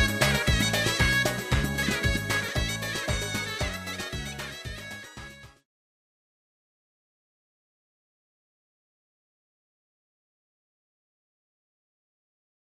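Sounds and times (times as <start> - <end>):
contemporary Kochari folk dance music: 0.0 - 5.6.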